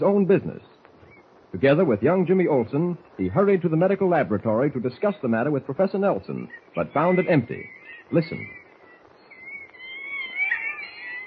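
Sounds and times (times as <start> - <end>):
speech: 0.0 - 0.7, 1.5 - 8.6
monkeys chattering: 5.0 - 11.2.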